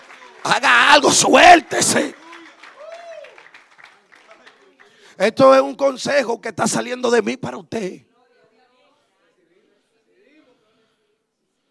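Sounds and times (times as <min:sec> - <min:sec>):
audience applause: 0:00.0 - 0:05.3
speech: 0:00.4 - 0:02.2, 0:05.2 - 0:08.1.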